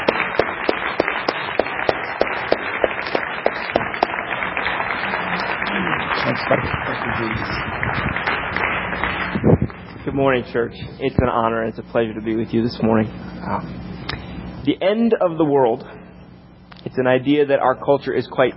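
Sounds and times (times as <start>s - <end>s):
audience applause: 0.0s - 9.3s
speech: 6.5s - 7.7s, 10.2s - 13.8s, 14.6s - 16.0s, 17.0s - 18.5s.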